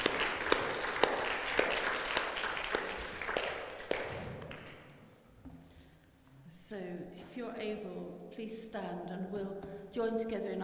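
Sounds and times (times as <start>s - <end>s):
audience clapping: 0.0s - 5.0s
speech: 7.0s - 10.6s.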